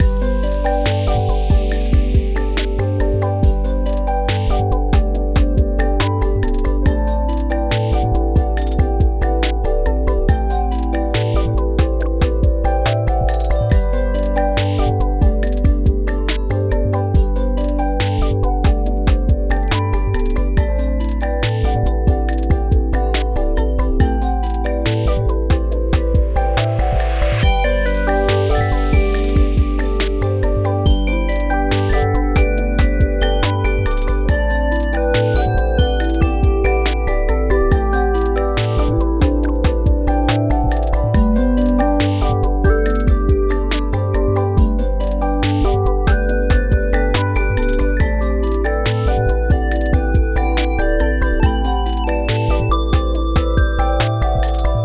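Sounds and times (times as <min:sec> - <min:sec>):
lo-fi music loop: 0:00.0 - 0:54.8.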